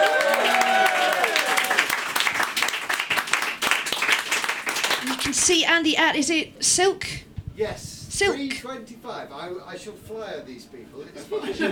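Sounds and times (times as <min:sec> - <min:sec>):
voices and whooping cheers: 0:00.0 - 0:02.0
audience applause: 0:00.0 - 0:05.4
speech: 0:05.2 - 0:11.6.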